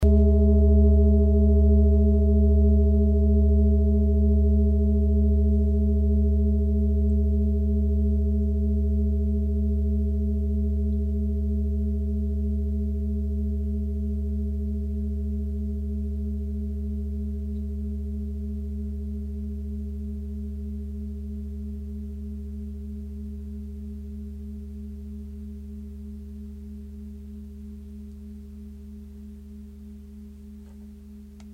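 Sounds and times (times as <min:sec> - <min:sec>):
klangschale singing bowl from Nepal: 0:00.0 - 0:31.3.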